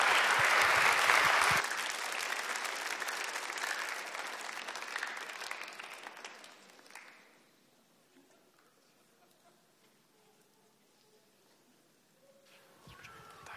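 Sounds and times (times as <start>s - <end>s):
audience clapping: 0.0s - 7.4s.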